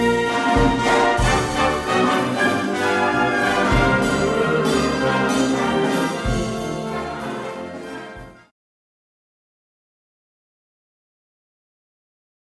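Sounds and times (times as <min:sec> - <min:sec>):
old swing jazz music: 0:00.0 - 0:08.5.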